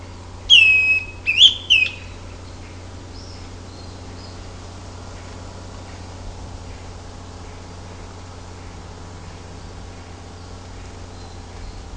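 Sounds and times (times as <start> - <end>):
Greenish schiffornis Schiffornis virescens whistled song: 0.0 - 4.4, 10.0 - 11.9.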